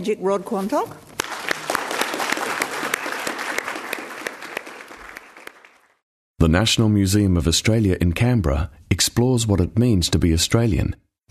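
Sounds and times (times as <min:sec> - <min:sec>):
speech: 0:00.0 - 0:01.1, 0:06.4 - 0:11.1
audience applause for the host: 0:01.2 - 0:06.0.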